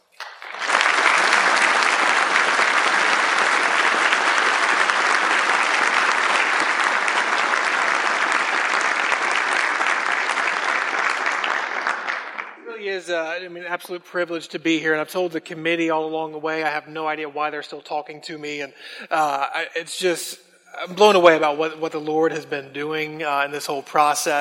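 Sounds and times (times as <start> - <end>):
church congregation applause welcoming guests: 0.0 - 12.7
speech: 13.2 - 24.3.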